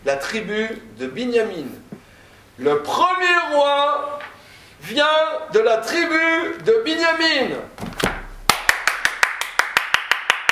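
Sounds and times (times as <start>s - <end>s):
speech: 0.1s - 1.9s, 2.6s - 4.2s, 4.8s - 7.9s
audience clapping hands: 8.5s - 10.5s.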